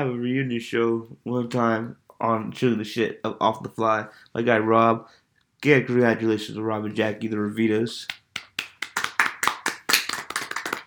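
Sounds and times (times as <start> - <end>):
speech: 0.0 - 8.2
big applause: 8.1 - 10.8.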